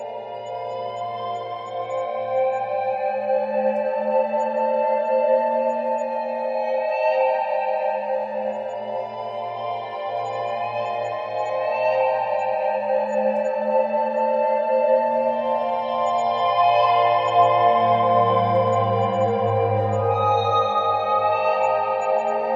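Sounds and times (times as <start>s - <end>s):
relaxing cinematic meditation background music: 0.0s - 22.5s.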